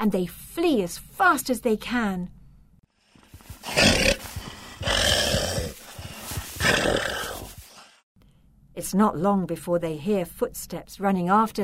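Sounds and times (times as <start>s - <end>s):
speech: 0.0s - 2.4s, 8.8s - 11.6s
werewolf groaning: 3.6s - 7.7s.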